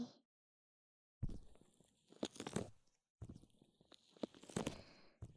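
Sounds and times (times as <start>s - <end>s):
ear massage sounds: 1.2s - 5.3s.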